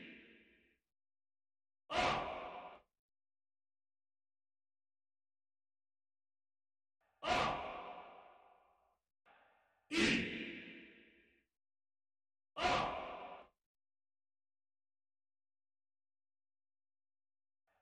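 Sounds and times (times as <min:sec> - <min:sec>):
people shouting: 0:01.9 - 0:02.5, 0:07.2 - 0:08.0, 0:12.6 - 0:13.2.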